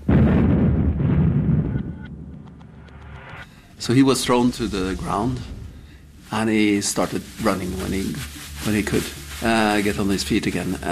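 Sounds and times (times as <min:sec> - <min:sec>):
explosion blast: 0:00.0 - 0:06.2
speech: 0:03.8 - 0:05.5, 0:06.3 - 0:10.9.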